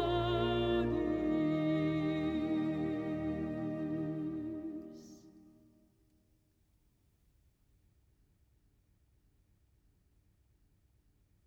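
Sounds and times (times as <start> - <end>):
person singing a lullaby: 0.0 - 5.5
piano: 0.0 - 5.7.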